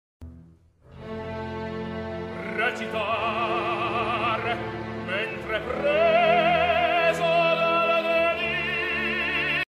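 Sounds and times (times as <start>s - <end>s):
opera singing: 2.4s - 9.6s.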